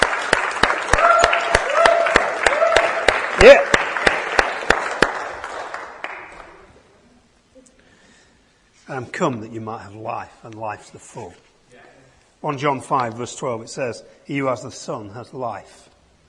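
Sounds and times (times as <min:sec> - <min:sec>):
audience applause: 0:00.0 - 0:06.7
speech: 0:03.4 - 0:03.7, 0:09.0 - 0:11.5, 0:12.4 - 0:15.9.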